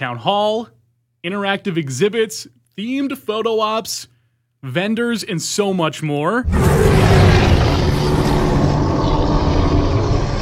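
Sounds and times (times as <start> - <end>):
speech: 0.0 - 7.3
Bigfoot roar sound effect: 6.5 - 10.4.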